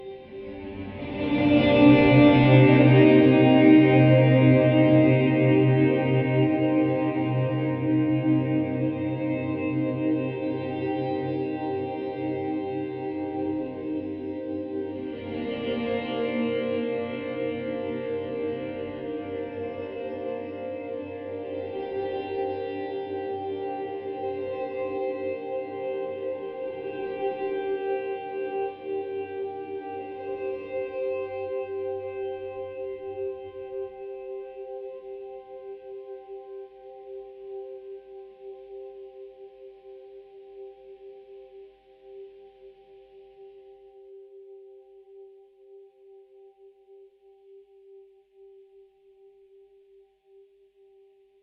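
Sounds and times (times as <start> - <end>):
sweeping cinematic guitars: 0.0 - 39.2.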